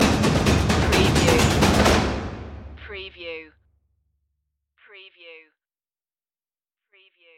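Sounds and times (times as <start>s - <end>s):
trailer percussion stinger: 0.0s - 3.0s.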